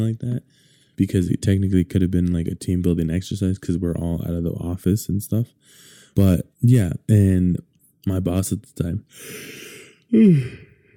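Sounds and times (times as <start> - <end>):
speech: 0.0 - 10.6
person yawning: 9.8 - 10.8.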